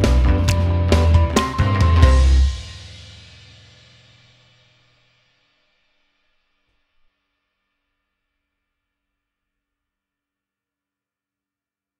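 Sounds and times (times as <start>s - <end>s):
instrumental music: 0.0s - 3.8s.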